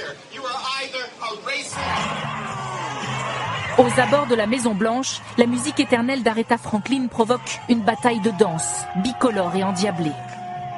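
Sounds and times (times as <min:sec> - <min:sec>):
crowd chanting and shouting: 0:01.6 - 0:10.7
speech: 0:03.8 - 0:10.4.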